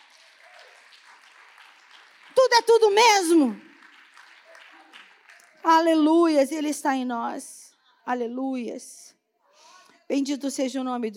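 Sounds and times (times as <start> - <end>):
audience applause: 0.0 - 5.8
speech: 2.4 - 3.7, 5.6 - 9.1, 10.1 - 11.1.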